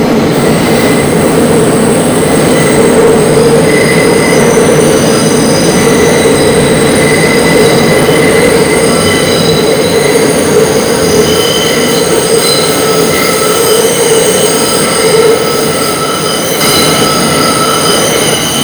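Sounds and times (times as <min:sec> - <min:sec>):
flanged train sound: 0:00.0 - 0:18.6.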